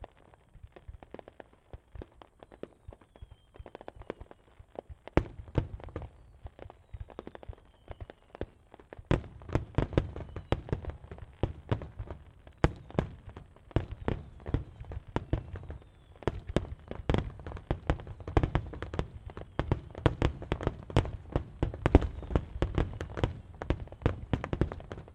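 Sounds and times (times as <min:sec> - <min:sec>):
Yasugawa fireworks crackling in Shiga Japan: 0:00.0 - 0:25.1.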